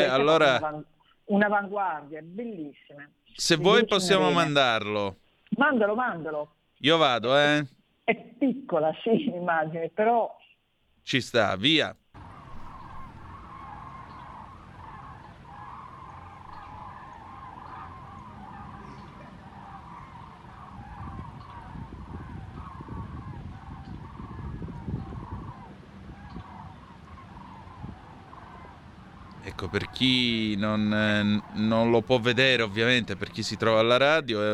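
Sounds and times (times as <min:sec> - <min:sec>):
laughter: 0:00.0 - 0:00.4
large flock of birds calling in flight: 0:00.0 - 0:00.7, 0:03.5 - 0:04.7, 0:12.2 - 0:34.5
speech: 0:00.0 - 0:10.4, 0:11.0 - 0:12.0, 0:29.7 - 0:34.5.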